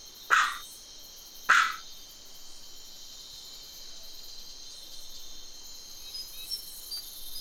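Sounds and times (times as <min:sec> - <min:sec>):
MacGregor's bowerbird calling: 0:00.3 - 0:00.7, 0:01.5 - 0:01.8.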